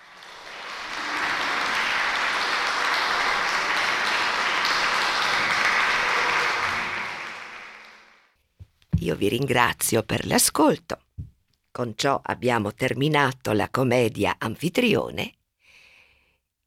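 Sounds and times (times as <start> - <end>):
audience applause: 0.0 - 8.4
speech: 9.1 - 11.0, 11.8 - 15.4.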